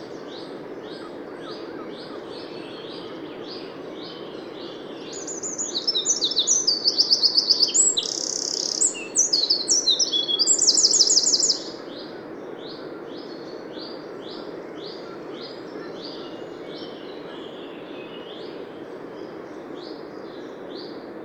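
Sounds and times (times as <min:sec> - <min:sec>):
Eurasian wren song: 0:00.0 - 0:21.2
Eurasian wren calls: 0:05.1 - 0:11.8.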